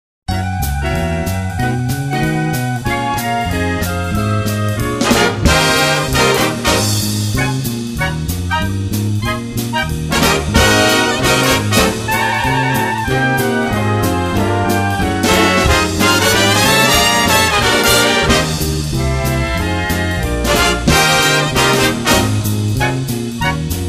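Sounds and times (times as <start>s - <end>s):
jazz music: 0.3s - 23.8s.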